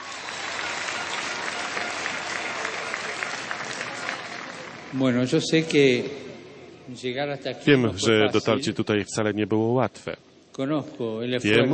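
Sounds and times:
audience applause: 0:00.0 - 0:05.6
speech: 0:04.9 - 0:06.2, 0:06.9 - 0:11.7.

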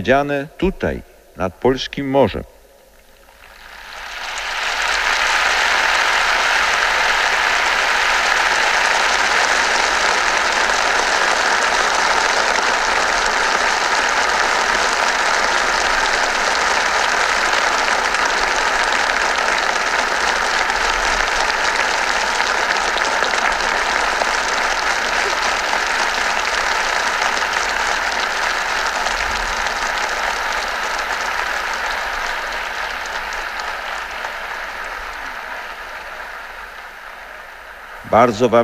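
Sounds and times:
speech: 0:00.0 - 0:02.6, 0:38.2 - 0:38.6
loud applause from a large crowd: 0:03.2 - 0:38.6.

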